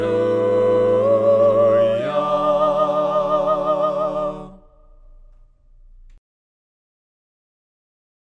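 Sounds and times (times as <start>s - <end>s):
voices singing hymns a cappella: 0.0s - 5.1s.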